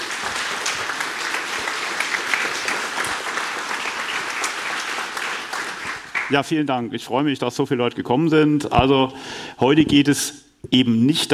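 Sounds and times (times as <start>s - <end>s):
audience applause: 0.0s - 6.4s
speech: 6.3s - 11.3s.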